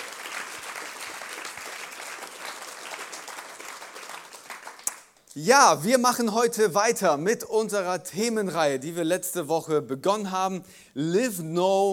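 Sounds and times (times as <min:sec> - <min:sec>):
audience applause: 0:00.0 - 0:05.0
speech: 0:05.4 - 0:11.9.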